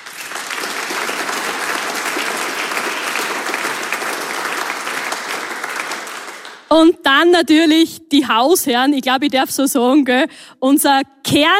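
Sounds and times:
audience applause: 0.0 - 6.7
speech: 6.7 - 11.5.

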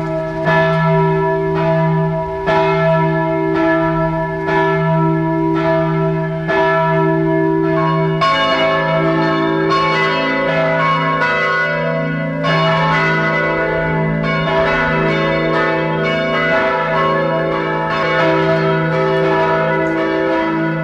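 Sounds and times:
parish church bells ringing at noon in Bad Eisenkappel, Carinthia: 0.0 - 20.8.

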